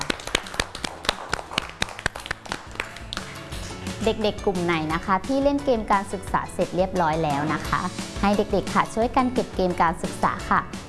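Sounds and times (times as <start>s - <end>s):
group of children clapping: 0.0s - 3.7s
speech: 4.0s - 10.8s.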